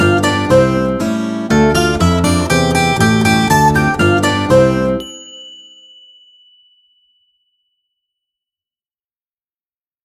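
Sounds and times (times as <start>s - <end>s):
acoustic Christmas song: 0.0s - 7.2s.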